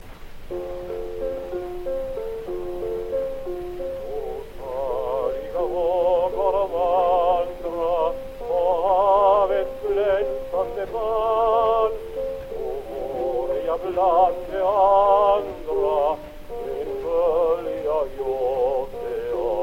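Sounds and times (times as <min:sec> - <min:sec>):
gramophone playing: 0:00.4 - 0:19.6.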